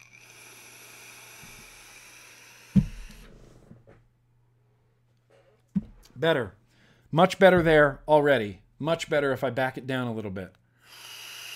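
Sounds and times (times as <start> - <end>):
hissing draw on an Innokin vaporizer: 0.0 - 3.7
speech: 6.2 - 11.0.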